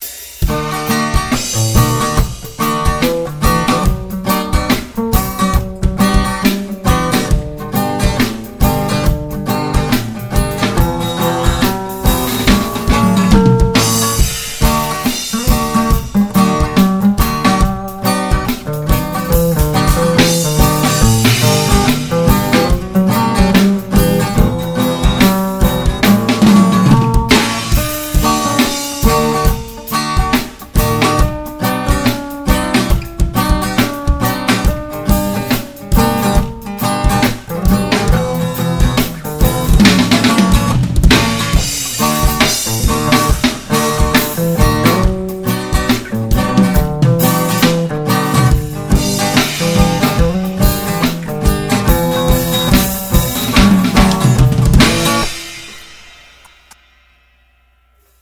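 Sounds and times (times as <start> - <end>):
reggae drums: 0.0 - 58.1.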